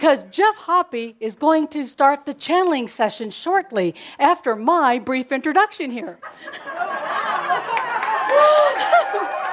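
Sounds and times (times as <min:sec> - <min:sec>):
speech: 0:00.0 - 0:09.0
live audience laughter and chuckles: 0:06.2 - 0:09.4.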